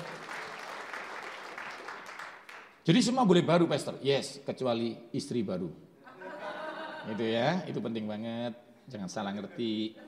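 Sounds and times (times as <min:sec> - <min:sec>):
audience applause: 0:00.0 - 0:02.7
speech: 0:02.8 - 0:05.9, 0:07.1 - 0:10.0
laughter: 0:06.0 - 0:07.6, 0:09.4 - 0:10.0.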